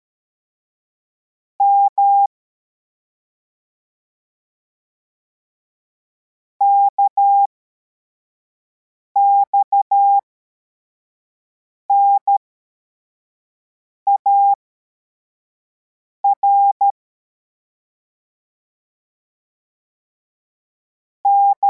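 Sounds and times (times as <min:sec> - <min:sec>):
CW morse code beeps: 0:01.6 - 0:02.3, 0:06.6 - 0:07.5, 0:09.2 - 0:10.2, 0:14.1 - 0:14.6, 0:16.3 - 0:17.0, 0:21.3 - 0:21.6.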